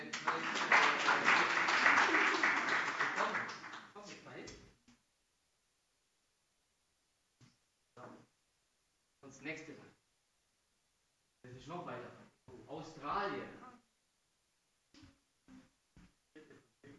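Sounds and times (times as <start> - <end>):
applause: 0.0 - 4.0
speech: 9.4 - 9.9, 11.7 - 12.2.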